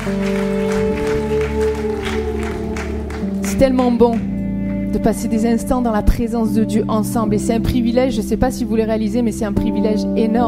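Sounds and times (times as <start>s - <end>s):
audience applauding: 0.0s - 4.4s
speech: 0.1s - 0.6s, 3.6s - 4.3s, 4.9s - 10.4s.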